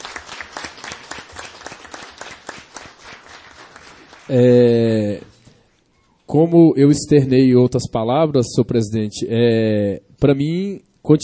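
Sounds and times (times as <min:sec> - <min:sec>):
audience applause at a city council session honoring a women's group: 0:00.0 - 0:04.4
speech: 0:04.3 - 0:05.3, 0:06.3 - 0:11.2.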